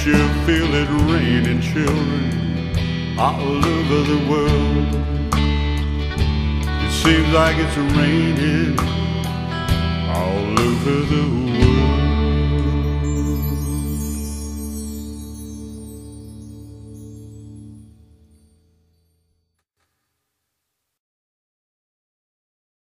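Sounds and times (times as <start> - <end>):
50s 60s band playing: 0.0 - 17.9.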